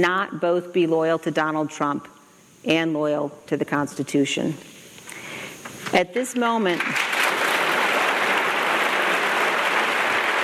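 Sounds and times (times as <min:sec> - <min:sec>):
speech: 0:00.0 - 0:04.8, 0:05.9 - 0:07.1
polite golf clap applause: 0:07.1 - 0:10.4.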